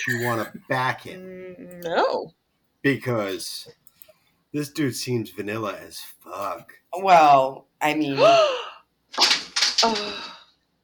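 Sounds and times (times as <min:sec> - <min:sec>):
speech: 0:00.0 - 0:03.8, 0:04.5 - 0:10.3
metal stepladder knocked over by cat clattering to the floor: 0:09.2 - 0:10.3.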